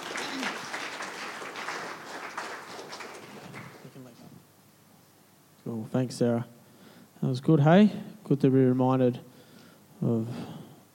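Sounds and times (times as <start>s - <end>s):
audience applause at a church gathering welcoming a speaker: 0.0s - 4.1s
speech: 5.7s - 6.6s, 7.2s - 9.3s, 10.0s - 10.5s.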